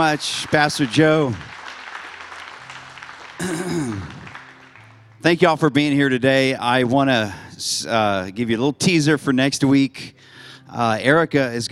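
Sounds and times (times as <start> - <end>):
speech: 0.0 - 1.5, 5.2 - 11.6
audience clapping hands: 0.0 - 5.5.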